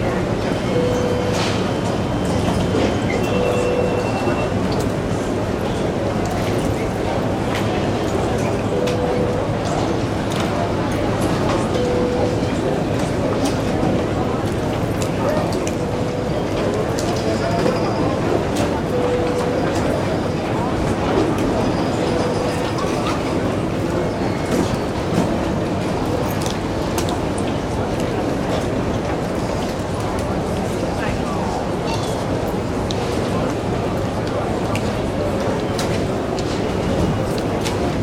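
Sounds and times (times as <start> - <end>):
airport terminal crowd murmur: 0.0 - 38.0
airport terminal beeps or chimes: 0.7 - 1.6, 3.2 - 4.5, 8.7 - 9.5, 11.8 - 12.5, 18.9 - 19.9, 22.0 - 22.9.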